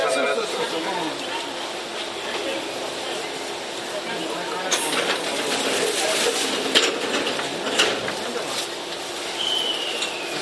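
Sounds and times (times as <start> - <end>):
Tokyu 7700 series train running rumble between Kamata and Gotanda: 0.0 - 10.4
murmur of voices inside a Tokyu 7700 series train: 0.0 - 10.4
clattering bursts: 4.7 - 8.6.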